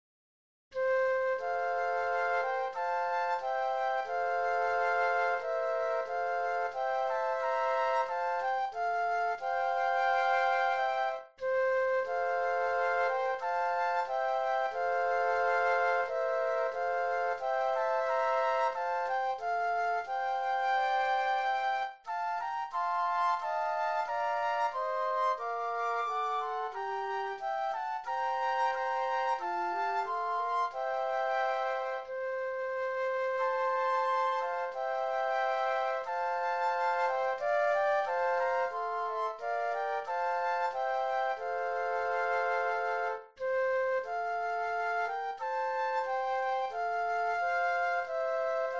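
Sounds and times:
flute trio playing: 0:00.8 - 0:48.7.

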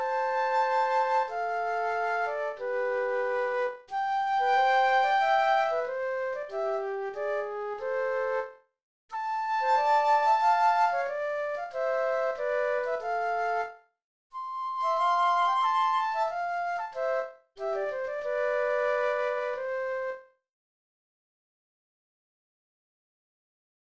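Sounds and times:
classical flute duet playing a march: 0:00.0 - 0:08.4, 0:09.3 - 0:13.7, 0:14.4 - 0:20.1.

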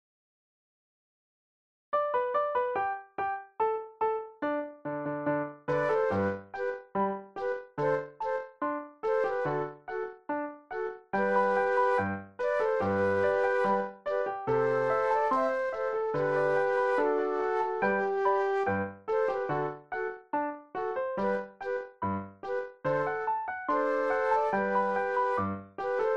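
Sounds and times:
piano: 0:02.0 - 0:26.1
flute duet: 0:05.7 - 0:10.2, 0:10.8 - 0:20.2, 0:21.2 - 0:26.1.

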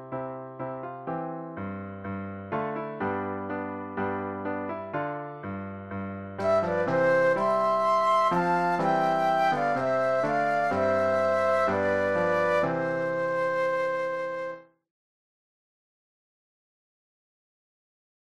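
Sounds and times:
piano playing Christmas music: 0:00.0 - 0:14.8
flute duet playing Christmas music: 0:06.4 - 0:14.6.

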